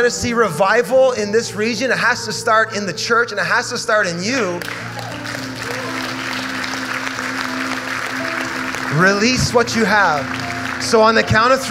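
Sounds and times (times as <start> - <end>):
speech: 0.0 - 5.4, 9.0 - 11.6
sustained low keyboard-like chord: 0.0 - 11.6
audience clapping: 4.6 - 11.6.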